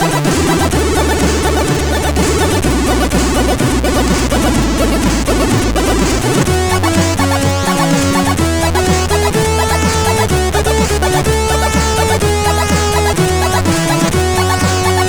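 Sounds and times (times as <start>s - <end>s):
chiptune melody on CSG8580R5 SID chip: 0.0s - 15.0s.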